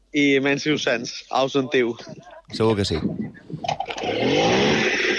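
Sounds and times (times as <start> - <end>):
speech: 0.1 - 5.0
motorbike engine starting and revving: 4.0 - 5.0.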